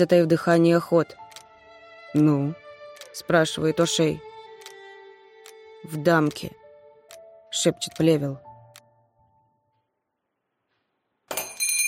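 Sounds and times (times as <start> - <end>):
speech: 0.0 - 1.2, 2.1 - 2.6, 3.2 - 4.3, 5.8 - 6.6, 7.5 - 8.4
bell ringing to summon staff: 11.3 - 11.8.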